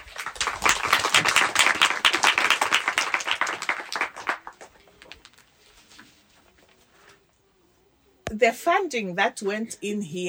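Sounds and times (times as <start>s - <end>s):
audience applause: 0.0s - 5.3s
speech: 8.4s - 10.2s.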